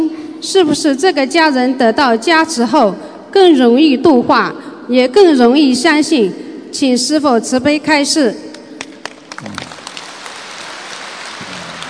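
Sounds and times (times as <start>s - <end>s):
speech: 0.4s - 8.5s
audience applause: 9.0s - 11.8s.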